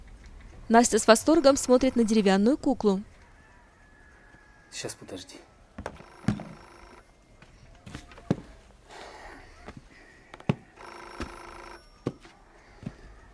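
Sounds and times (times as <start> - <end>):
speech: 0.7 - 3.1, 4.7 - 5.5
telephone ringing: 0.8 - 2.8, 6.0 - 7.1, 10.8 - 12.2.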